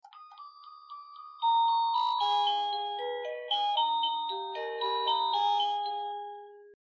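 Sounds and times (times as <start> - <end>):
melody: 0.0 - 6.8.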